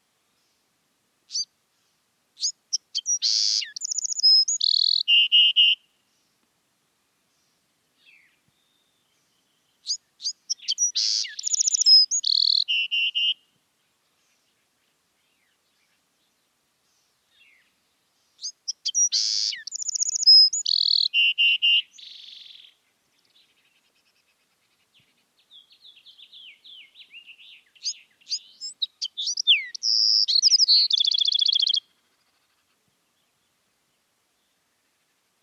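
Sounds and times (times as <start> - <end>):
wren singing: 2.4 - 5.8, 8.0 - 13.4, 18.3 - 23.9, 24.8 - 32.7.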